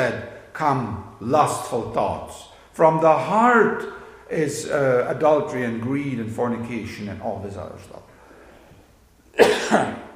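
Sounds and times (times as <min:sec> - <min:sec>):
speech: 0:00.0 - 0:08.1, 0:09.4 - 0:10.1
cough: 0:09.4 - 0:10.1.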